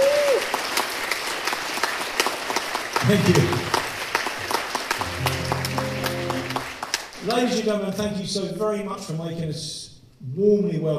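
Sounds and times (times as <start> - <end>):
audience applause: 0.0 - 7.5
speech: 3.0 - 3.8, 7.2 - 10.9.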